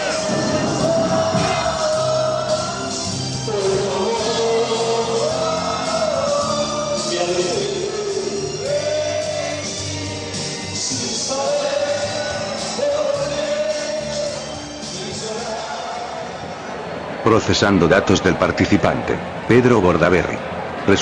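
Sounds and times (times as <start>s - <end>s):
fireworks crackling bursts: 0.0s - 2.2s
band music with wavering melody: 0.0s - 16.4s
crowd roar of supporters at a parade: 0.0s - 21.0s
speech: 17.3s - 21.0s.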